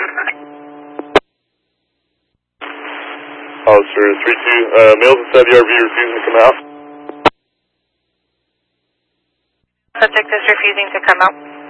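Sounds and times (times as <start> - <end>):
band-limited radio static: 0.0 - 1.2, 2.6 - 7.3, 10.0 - 11.6
steady buzzing tone: 2.6 - 7.3, 10.0 - 11.6
speech: 3.8 - 6.7, 10.0 - 11.6.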